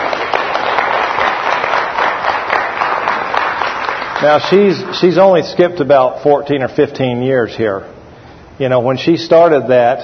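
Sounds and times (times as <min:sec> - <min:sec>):
audience applause: 0:00.0 - 0:05.0
speech: 0:04.2 - 0:07.9, 0:08.6 - 0:10.0.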